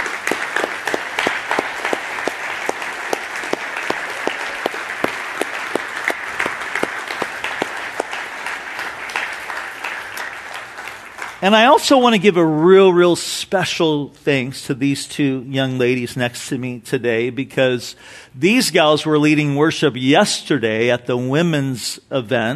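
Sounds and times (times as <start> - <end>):
audience applauding: 0.0 - 11.8
speech: 11.4 - 22.5.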